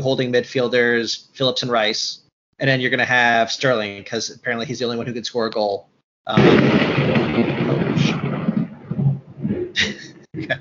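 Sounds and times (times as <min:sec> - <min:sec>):
speech: 0:00.0 - 0:08.2
thunder strike: 0:06.3 - 0:10.4.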